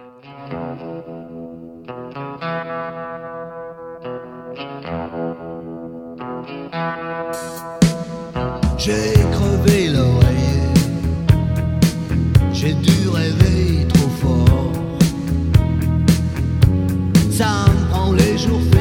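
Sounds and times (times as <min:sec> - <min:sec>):
early-eighties French pop-rock song with distorted guitar chords: 0:00.0 - 0:18.7.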